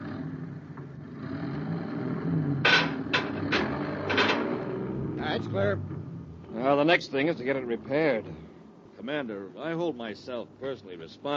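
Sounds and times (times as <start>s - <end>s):
truck engine rumbling as it pulls forward: 0.0s - 8.9s
speech: 5.4s - 11.3s.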